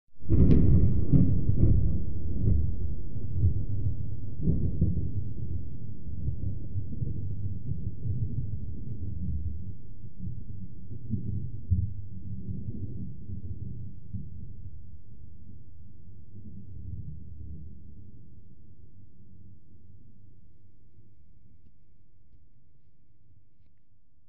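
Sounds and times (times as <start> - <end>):
thunder: 0.2 - 15.6.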